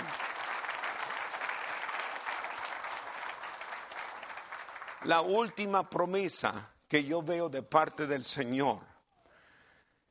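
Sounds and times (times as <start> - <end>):
audience applause: 0.0 - 5.6
speech: 5.0 - 8.9.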